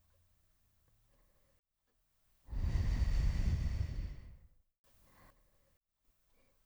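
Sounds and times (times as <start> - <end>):
blowing into ear: 2.5 - 4.4.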